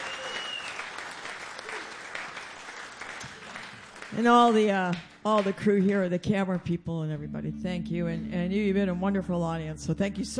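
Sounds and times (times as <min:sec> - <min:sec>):
audience applause at the end of a live show: 0:00.0 - 0:05.5
speech: 0:04.1 - 0:10.3.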